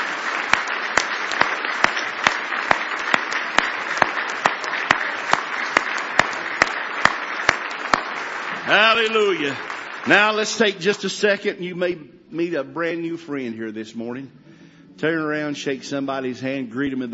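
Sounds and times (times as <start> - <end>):
audience hand clapping: 0.0 - 11.3
speech: 8.7 - 14.4, 15.0 - 17.1.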